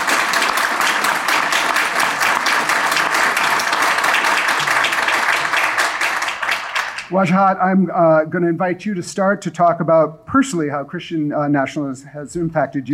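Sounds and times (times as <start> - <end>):
audience applause: 0.0 - 7.1
speech: 7.1 - 12.9.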